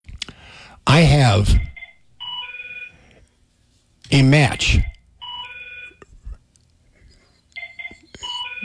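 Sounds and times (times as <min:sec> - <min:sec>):
speech: 0:00.8 - 0:01.7, 0:04.1 - 0:04.9
telephone ringing with electronic warble: 0:01.8 - 0:03.0, 0:05.2 - 0:06.0, 0:07.6 - 0:08.6.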